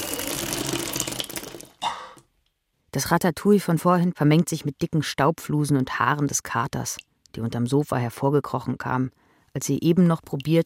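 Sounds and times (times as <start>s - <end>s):
vomit splashing onto the floor: 0.0s - 1.8s
speech: 3.0s - 10.6s.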